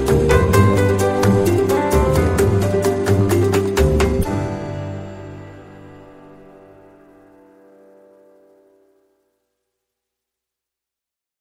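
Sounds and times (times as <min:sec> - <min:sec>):
blues instrumental: 0:00.0 - 0:08.6.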